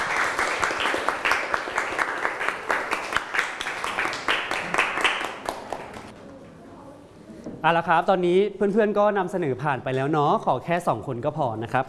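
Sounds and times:
classroom applauding a classmate: 0.0 - 6.2
speech: 7.6 - 11.8.

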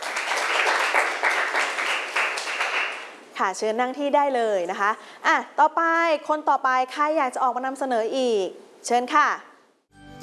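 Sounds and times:
classroom applause: 0.0 - 3.2
speech: 3.4 - 9.5.

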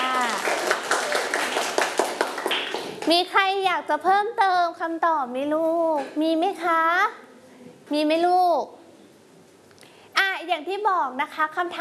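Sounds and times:
group of children clapping: 0.0 - 3.1
speech: 3.1 - 7.3, 7.9 - 8.8, 10.4 - 11.7.

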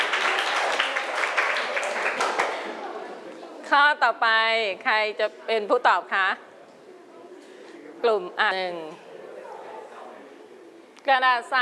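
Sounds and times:
classroom applause for a student: 0.0 - 2.8
speech: 3.7 - 6.5, 8.0 - 9.0, 11.0 - 11.6.

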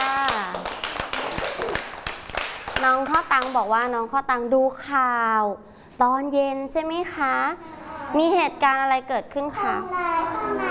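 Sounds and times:
sparse hand claps for a young child: 0.0 - 3.6
speech: 2.8 - 10.6.

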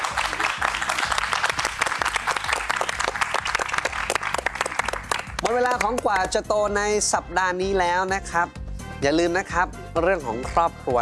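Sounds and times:
audience applause: 0.0 - 5.6
speech: 5.6 - 11.0.

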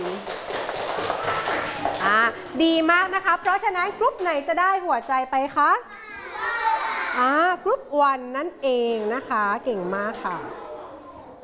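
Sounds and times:
students clapping in a classroom: 0.0 - 2.4
speech: 2.1 - 6.0, 7.2 - 10.6
children's voices in a classroom: 5.9 - 7.4, 10.1 - 11.4.

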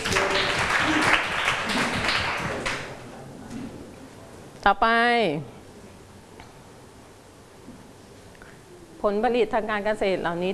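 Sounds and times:
students clapping hands: 0.0 - 3.0
speech: 4.7 - 5.6, 9.0 - 10.5.

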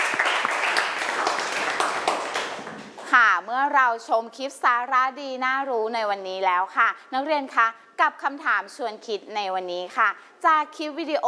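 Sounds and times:
class applause: 0.0 - 3.1
speech: 3.5 - 11.2.

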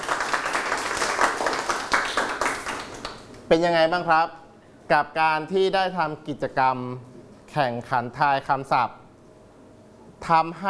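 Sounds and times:
group of students applauding: 0.0 - 3.5
speech: 3.5 - 9.0, 10.2 - 10.6.

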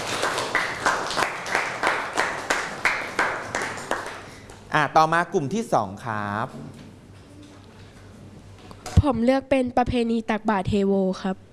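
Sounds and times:
people clapping: 0.0 - 4.7
speech: 4.7 - 6.8, 9.0 - 11.5.

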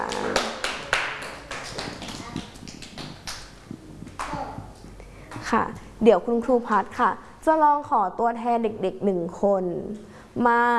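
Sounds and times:
children clapping: 0.0 - 5.4
speech: 5.5 - 10.7.

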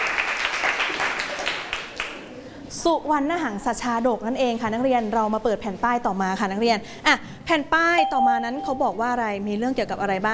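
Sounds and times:
classroom students applauding a classmate: 0.0 - 2.2
speech: 2.8 - 10.3.

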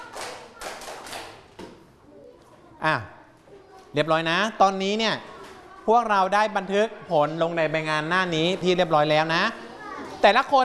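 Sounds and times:
students clapping hands together in a classroom: 0.0 - 1.7
speech: 2.8 - 3.2, 3.9 - 9.6, 10.2 - 10.6.

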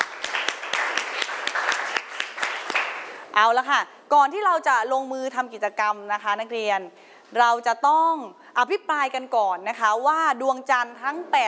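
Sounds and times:
classroom clapping: 0.0 - 3.2
speech: 3.4 - 11.4.

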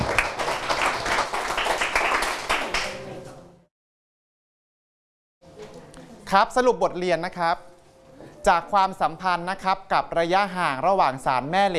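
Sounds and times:
students clapping hands: 0.0 - 3.1
speech: 6.3 - 7.7, 8.4 - 11.7.

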